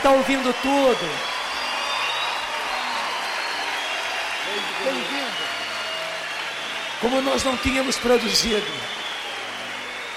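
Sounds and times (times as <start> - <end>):
speech: 0.0 - 1.4, 4.6 - 5.6, 7.0 - 9.1
audience applause: 0.0 - 10.1.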